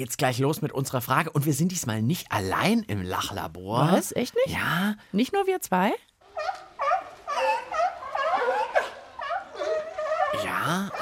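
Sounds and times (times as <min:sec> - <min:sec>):
speech: 0:00.0 - 0:06.6, 0:10.7 - 0:10.9
seals barking and yelping: 0:06.3 - 0:10.9.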